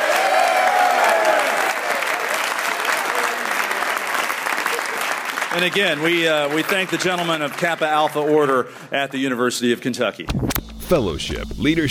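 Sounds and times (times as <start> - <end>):
audience applause: 0.0 - 8.6
speech: 5.5 - 11.8.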